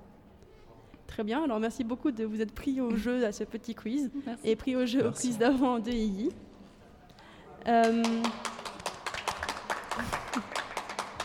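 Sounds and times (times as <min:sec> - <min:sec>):
speech: 0:01.2 - 0:06.5, 0:07.6 - 0:08.5
audience applause: 0:08.0 - 0:11.2.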